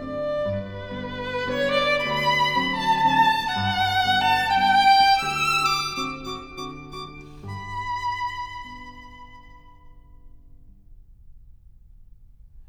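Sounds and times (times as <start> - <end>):
piano waltz: 0.0 - 9.4.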